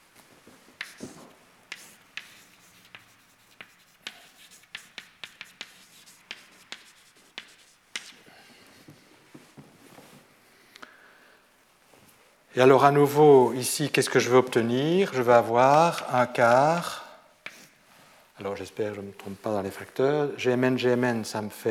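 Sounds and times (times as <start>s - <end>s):
pen writing mathematical terms by hand: 0.8s - 8.2s
speech: 12.6s - 17.0s, 18.4s - 21.6s.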